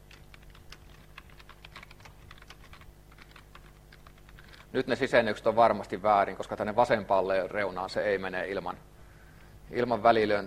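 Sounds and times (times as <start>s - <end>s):
typing on a computer keyboard while writing program code: 0.0s - 4.8s
steady hum: 0.0s - 10.4s
speech: 4.7s - 8.9s, 9.7s - 10.4s.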